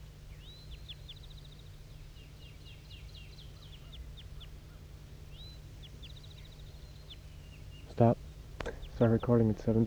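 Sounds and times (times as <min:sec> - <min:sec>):
wild bird flight calls: 0:07.7 - 0:09.8
speech: 0:08.0 - 0:08.2, 0:09.0 - 0:09.8.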